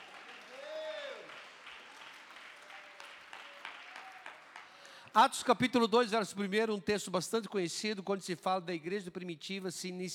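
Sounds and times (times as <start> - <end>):
audience clapping: 0.0 - 5.2
speech: 5.2 - 10.1.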